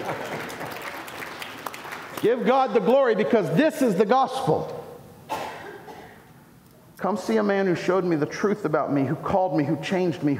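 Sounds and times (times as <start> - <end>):
audience clapping: 0.0 - 2.9
speech: 2.2 - 4.8, 7.0 - 10.3.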